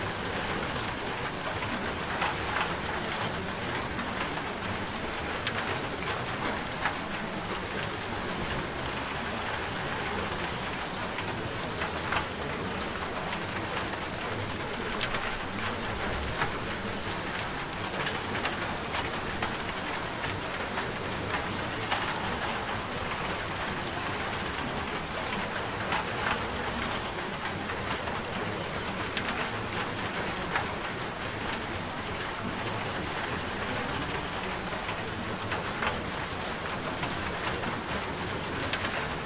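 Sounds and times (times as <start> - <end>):
rain: 0.0 - 39.2.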